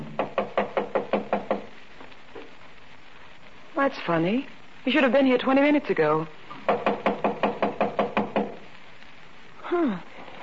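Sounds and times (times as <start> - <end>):
knocking on a door: 0.0 - 1.7, 6.6 - 8.6
speech: 3.8 - 6.9, 9.7 - 10.1.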